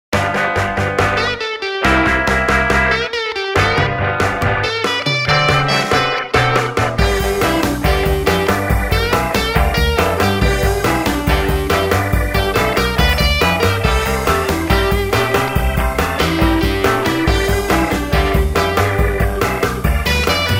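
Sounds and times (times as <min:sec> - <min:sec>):
guitar: 0:00.1 - 0:20.5.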